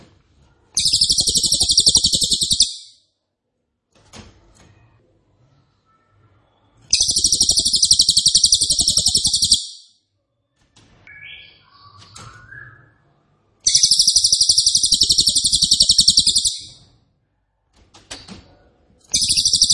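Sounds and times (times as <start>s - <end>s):
Cililin high pulsed trill: 0.8s - 2.9s, 7.0s - 9.7s, 13.7s - 16.7s, 19.2s - 19.7s
faint chirps: 0.8s - 3.0s, 5.6s - 10.0s, 12.9s - 16.8s, 19.1s - 19.7s.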